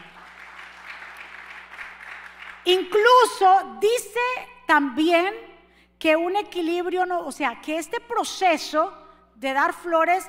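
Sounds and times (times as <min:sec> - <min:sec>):
audience applause: 0:00.0 - 0:02.6
speech: 0:02.6 - 0:10.2.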